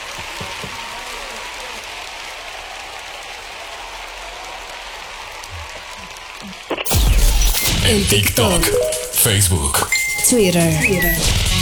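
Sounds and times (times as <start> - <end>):
applause: 0.0 - 6.9
speech: 7.9 - 11.6.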